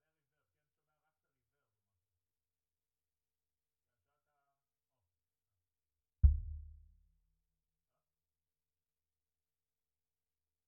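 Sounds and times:
sub bass: 0:06.2 - 0:07.0.

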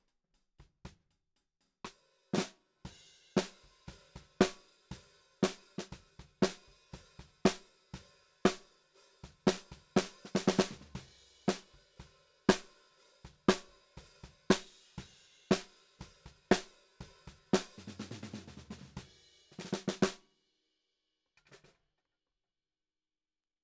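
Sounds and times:
snare drum: 0:01.9 - 0:02.6, 0:03.4 - 0:20.2.

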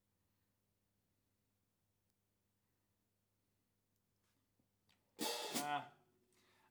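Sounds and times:
ride cymbal: 0:05.2 - 0:05.8.

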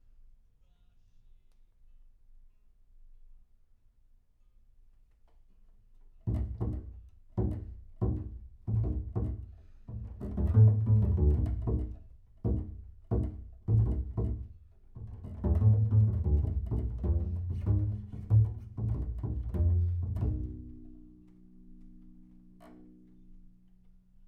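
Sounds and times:
bass sound: 0:08.7 - 0:21.0.

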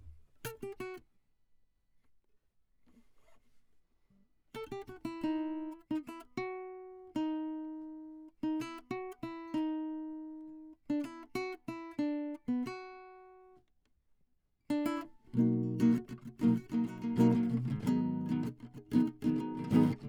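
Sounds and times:
classical guitar: 0:04.6 - 0:13.6, 0:14.7 - 0:20.0.

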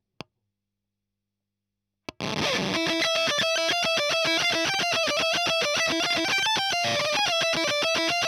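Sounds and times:
fuzz guitar ending: 0:02.2 - 0:08.2.

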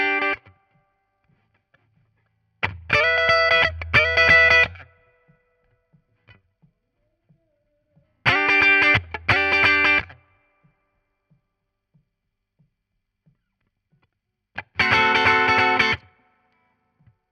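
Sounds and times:
guitar solo: 0:00.0 - 0:00.5, 0:02.7 - 0:04.9, 0:08.2 - 0:10.2, 0:14.6 - 0:16.7.

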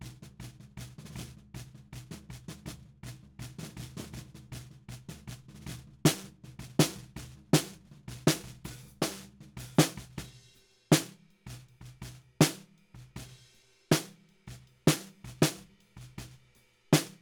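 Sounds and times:
snare drum bottom at 160 BPM: 0:06.1 - 0:14.2, 0:14.8 - 0:16.3, 0:17.0 - 0:17.1.

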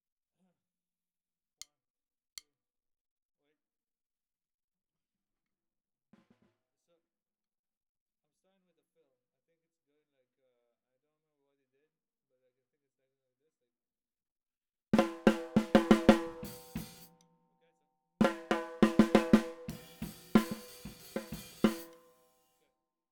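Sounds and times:
snare drum: 0:15.0 - 0:17.1, 0:18.2 - 0:22.0.

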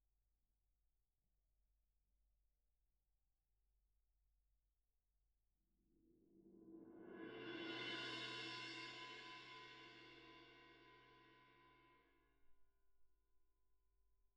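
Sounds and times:
percussion: 0:06.0 - 0:12.1.

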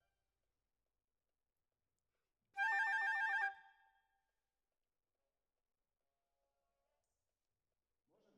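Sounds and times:
flute: 0:02.6 - 0:04.0.

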